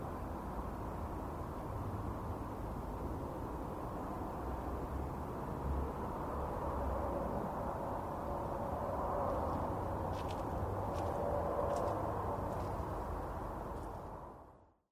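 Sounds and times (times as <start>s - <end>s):
cars passing: 0.2s - 14.6s
footsteps walking: 9.4s - 14.1s.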